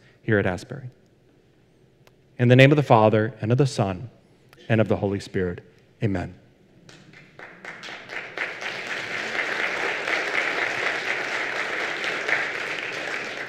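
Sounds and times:
speech: 0.2s - 1.0s, 2.4s - 7.0s
audience clapping: 6.8s - 13.4s.

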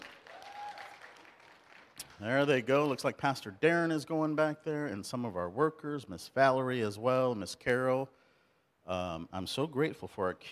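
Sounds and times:
audience applause: 0.0s - 2.0s
speech: 2.2s - 8.2s, 8.8s - 10.5s.

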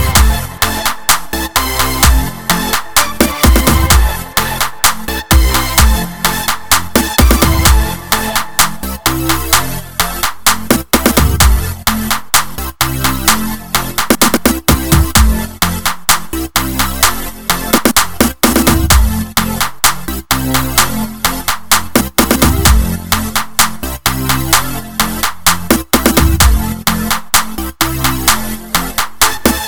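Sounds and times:
instrumental music: 0.0s - 29.6s.

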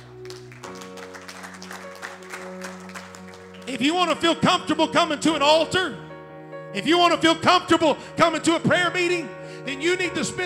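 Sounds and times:
audience applause: 0.0s - 3.7s
sustained organ-like chords: 0.0s - 10.4s
speech: 3.7s - 6.0s, 6.7s - 10.4s.

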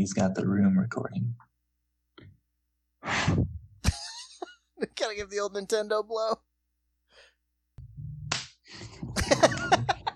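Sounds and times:
speech: 0.0s - 1.5s, 3.0s - 3.6s, 4.8s - 6.5s
hand clap: 8.3s - 8.6s
laughter: 8.9s - 10.1s.

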